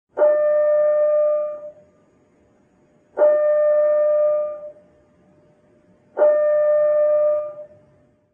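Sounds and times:
submarine alarm: 0:00.1 - 0:05.1, 0:06.1 - 0:08.3.

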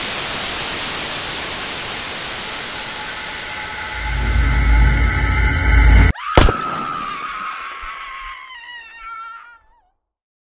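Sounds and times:
scary forest ambience: 0:01.4 - 0:08.6.

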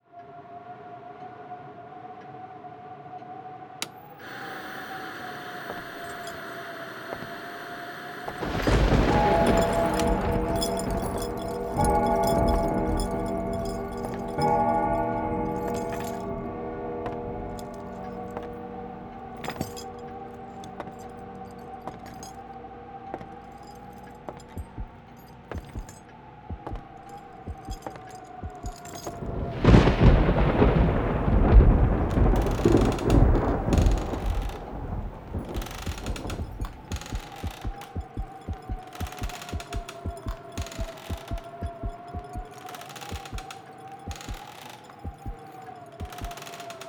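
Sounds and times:
ghostly music: 0:00.2 - 0:46.8.

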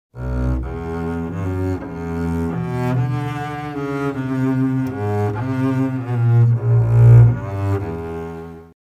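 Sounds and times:
double bass: 0:00.2 - 0:08.7.

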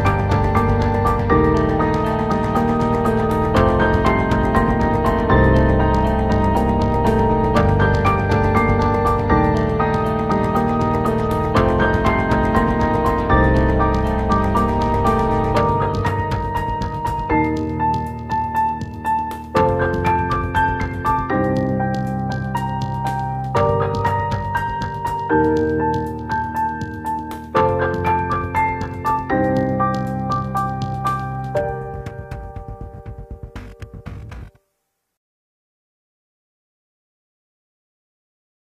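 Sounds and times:
suspenseful dramatic cinematic documentary music: 0:00.0 - 0:34.5.

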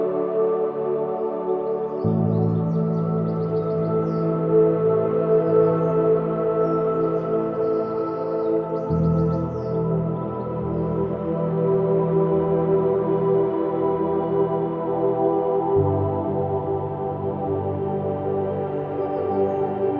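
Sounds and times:
forest nature sounds: 0:00.0 - 0:19.9
relaxing forest meditation sleep music: 0:00.0 - 0:19.9.

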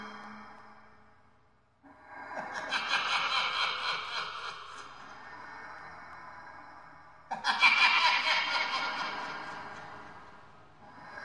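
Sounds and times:
horror laughter: 0:02.4 - 0:05.0, 0:07.3 - 0:10.0.

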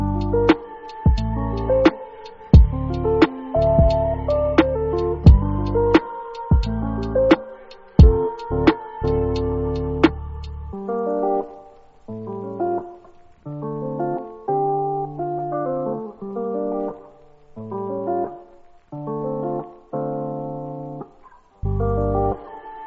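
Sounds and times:
lo-fi type beat: 0:00.0 - 0:10.6
rain: 0:00.0 - 0:22.8.

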